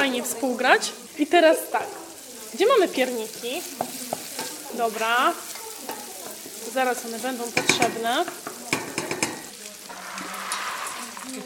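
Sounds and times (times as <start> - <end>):
onions frying in duck fat: 0.0 - 11.4
speech: 0.1 - 4.1, 4.7 - 6.0, 6.7 - 8.5
scraping clatters of stirring: 9.9 - 11.4.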